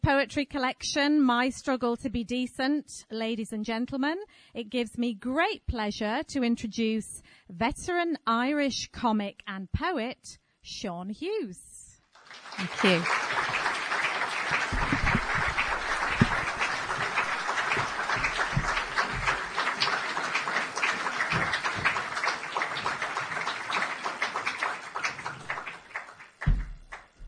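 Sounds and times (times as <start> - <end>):
speech: 0.1 - 11.7, 12.3 - 13.4
audience applause: 12.2 - 27.2.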